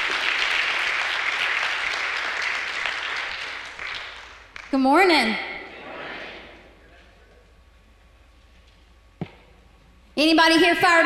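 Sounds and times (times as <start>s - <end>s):
church congregation applauding to welcome the preacher: 0.0s - 4.8s
speech: 4.7s - 5.5s, 10.2s - 11.0s.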